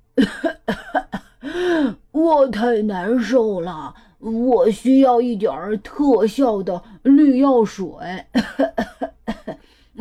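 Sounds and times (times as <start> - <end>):
speech: 0.2 - 0.6, 2.3 - 9.1
storyteller imitating coughing: 0.2 - 1.4, 8.3 - 9.7.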